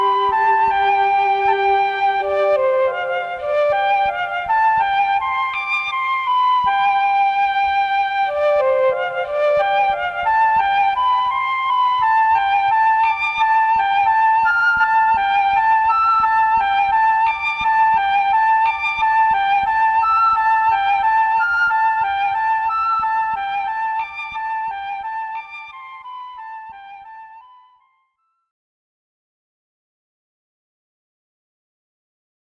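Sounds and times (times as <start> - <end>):
Mellotron flute noodle: 0.0 - 28.0.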